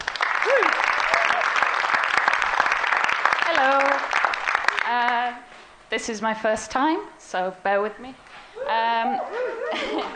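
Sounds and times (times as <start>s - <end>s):
audience applause: 0.0s - 4.9s
speech: 6.0s - 10.1s
laughter: 9.1s - 10.1s.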